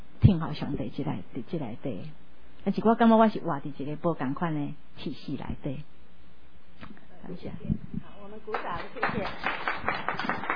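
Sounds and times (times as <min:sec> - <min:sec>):
speech: 0:00.3 - 0:06.0, 0:06.8 - 0:10.4
audience applause: 0:08.5 - 0:10.5.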